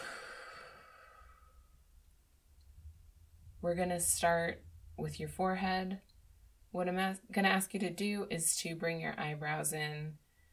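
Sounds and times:
person breathing out during a guided progressive muscle relaxation exercise: 0.0 - 1.7
speech: 3.6 - 6.1, 6.7 - 10.2.

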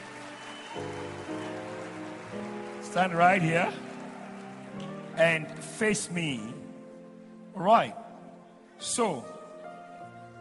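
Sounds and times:
crowd clapping: 0.0 - 6.0
speech: 2.9 - 3.8, 5.2 - 6.6, 7.6 - 8.0, 8.8 - 9.4.

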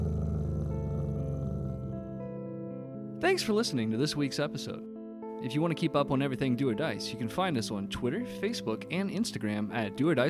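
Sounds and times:
big cat growling: 0.0 - 2.3
speech: 3.2 - 10.2.

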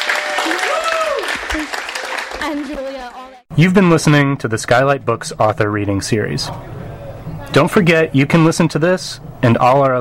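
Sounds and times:
crowd applauding: 0.0 - 3.4
speech: 2.4 - 6.8, 7.5 - 9.9.

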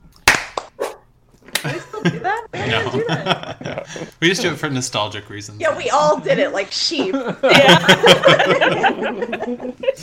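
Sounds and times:
group clapping hands: 0.2 - 0.8, 1.5 - 1.8
laughter: 1.6 - 4.2, 5.8 - 10.0
speech: 1.6 - 10.0.

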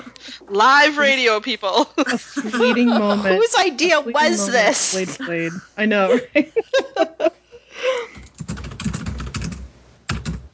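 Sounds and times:
speech: 0.5 - 7.4
laughter: 1.8 - 3.6, 4.3 - 8.2
keyboard typing over a call: 8.2 - 10.5.

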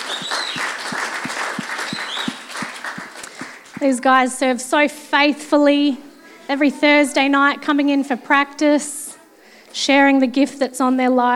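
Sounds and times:
audience applauding the worship team: 0.0 - 3.8
speech: 3.8 - 9.0, 9.8 - 11.3.

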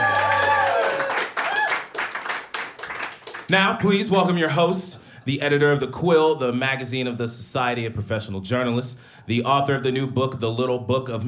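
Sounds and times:
audience applause: 0.0 - 3.5
speech: 3.5 - 11.2.

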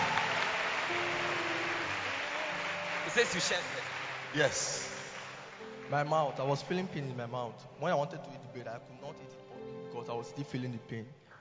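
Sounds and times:
audience clapping hands: 0.0 - 7.2
speech: 3.1 - 4.9, 5.9 - 11.2.

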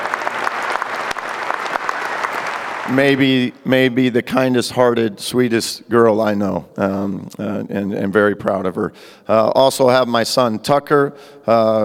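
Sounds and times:
crowd applause: 0.0 - 3.6
speech: 2.9 - 11.8.

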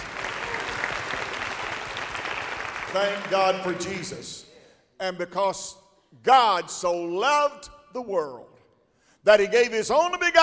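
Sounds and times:
audience clapping hands: 0.0 - 4.2
speech: 2.9 - 4.4, 5.0 - 8.5, 9.2 - 10.4.

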